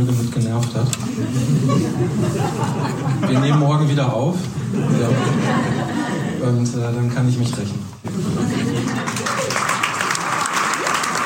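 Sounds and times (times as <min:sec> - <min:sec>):
speech: 0:00.0 - 0:02.7, 0:06.4 - 0:09.3
laughter: 0:01.0 - 0:06.7, 0:08.1 - 0:10.5
applause: 0:08.8 - 0:11.2.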